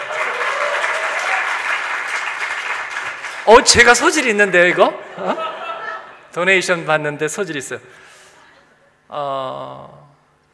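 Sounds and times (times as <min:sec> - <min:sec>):
audience applause: 0:00.0 - 0:04.9
speech: 0:03.5 - 0:05.5, 0:06.3 - 0:08.1, 0:09.1 - 0:10.5
laughter: 0:04.8 - 0:06.3.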